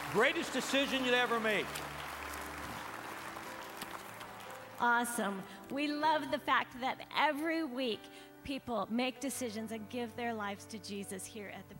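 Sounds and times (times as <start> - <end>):
church congregation applauding to welcome new members: 0.0 - 5.5
speech: 0.1 - 2.0, 4.8 - 11.7.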